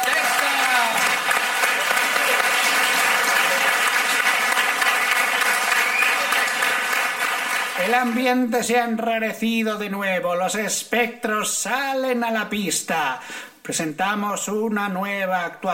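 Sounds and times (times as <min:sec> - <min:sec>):
audience applause: 0:00.0 - 0:08.4
speech: 0:07.9 - 0:15.7.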